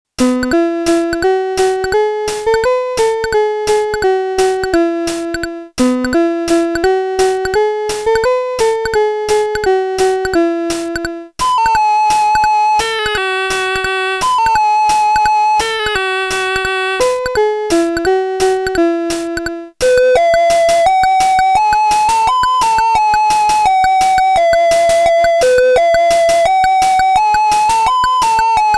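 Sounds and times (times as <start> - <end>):
Casio VL1 synthesizer: 0.2 - 18.8, 19.4 - 28.7.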